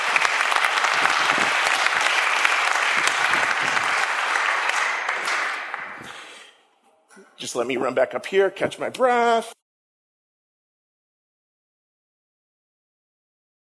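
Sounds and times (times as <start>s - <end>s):
audience applause: 0.0s - 6.4s
speech: 7.5s - 9.6s.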